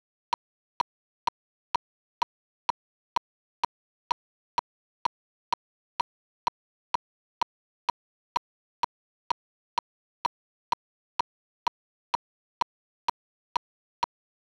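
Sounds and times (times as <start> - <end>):
click: 2.2 - 8.4, 9.3 - 14.1.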